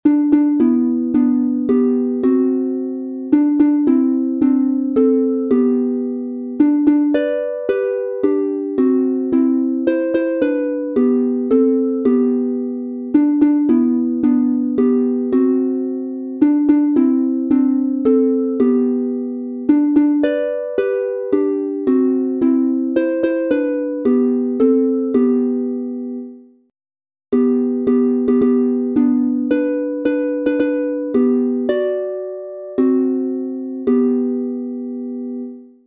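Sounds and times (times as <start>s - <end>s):
instrumental harp melody in G major: 0.0s - 26.5s, 27.3s - 35.8s.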